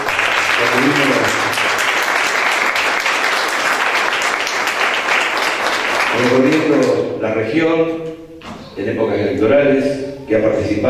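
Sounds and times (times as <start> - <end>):
audience applause: 0.0 - 7.0
speech: 7.4 - 8.1, 8.8 - 10.8.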